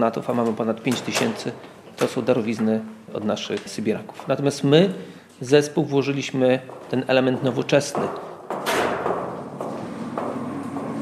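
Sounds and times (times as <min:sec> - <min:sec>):
speech: 0:00.0 - 0:08.3
sharp knocks of people working in a forest: 0:06.6 - 0:11.0
loud thud: 0:08.0 - 0:10.9.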